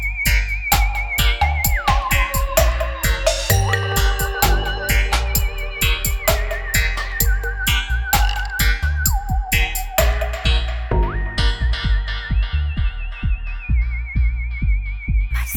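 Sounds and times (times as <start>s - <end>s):
dub music: 0.0s - 15.5s.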